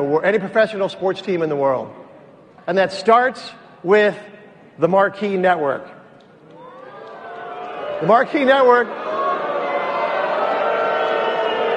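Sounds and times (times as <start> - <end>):
speech: 0.0 - 2.0, 2.6 - 6.0, 8.0 - 9.0
crowd booing: 6.6 - 11.7.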